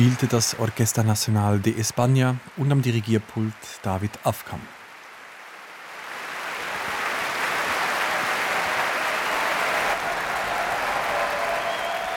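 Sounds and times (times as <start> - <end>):
large enthusiastic concert audience applauding: 0.0 - 3.0, 4.8 - 12.1
speech: 0.0 - 4.8
faint cheering: 6.5 - 12.1.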